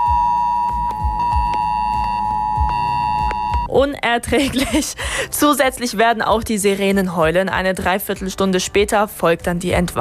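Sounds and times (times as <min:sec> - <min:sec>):
shrill emergency alert phone tone: 0:00.0 - 0:03.7
speech: 0:03.8 - 0:09.9.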